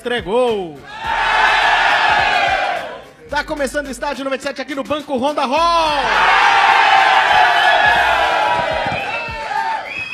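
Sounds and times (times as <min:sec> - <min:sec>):
speech: 0:00.0 - 0:01.2, 0:03.3 - 0:06.9
live audience cheering: 0:00.9 - 0:03.0, 0:06.0 - 0:10.1.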